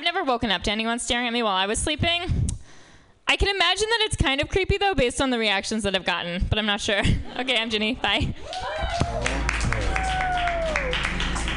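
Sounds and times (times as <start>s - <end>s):
speech: 0.2s - 2.5s, 3.3s - 9.3s
audience clapping: 8.4s - 11.5s.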